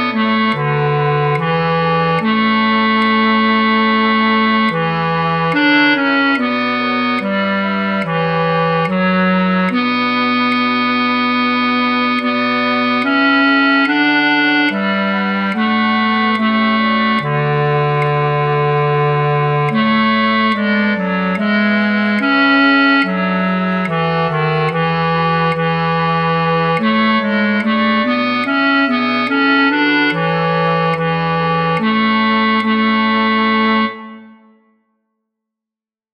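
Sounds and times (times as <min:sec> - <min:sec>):
bass flute: 0:00.0 - 0:34.7.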